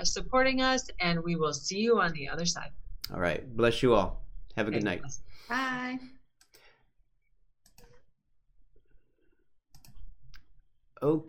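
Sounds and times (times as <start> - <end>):
speech: 0.0 - 6.2, 11.0 - 11.2
computer mouse clicking: 6.4 - 6.7, 7.6 - 8.0, 9.7 - 10.5.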